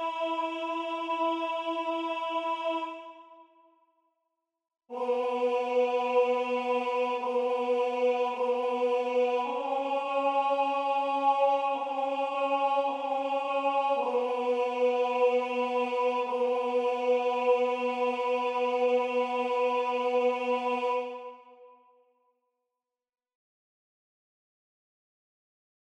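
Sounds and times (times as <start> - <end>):
tenor singing: 0.0 - 3.4, 4.9 - 21.3.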